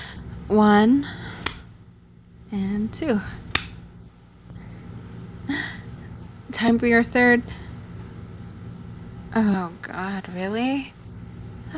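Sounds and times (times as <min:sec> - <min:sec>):
speech: 0:00.5 - 0:01.2, 0:02.5 - 0:03.5, 0:06.5 - 0:07.6, 0:09.3 - 0:11.0
hand claps during clapping push-ups: 0:03.5 - 0:03.8.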